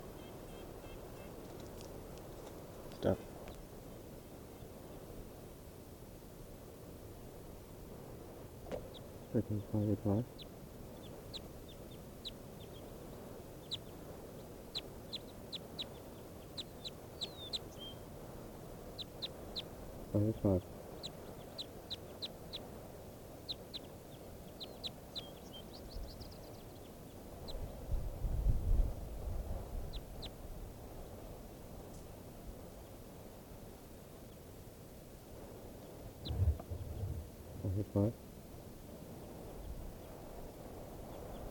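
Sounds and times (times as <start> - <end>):
bird chirping: 0.0 - 1.9, 8.7 - 18.1, 18.8 - 22.8, 23.4 - 27.8, 35.8 - 38.1
hiss: 0.0 - 41.4
speech: 3.0 - 3.3, 9.4 - 10.5, 20.2 - 20.7
low rumble: 36.1 - 38.1.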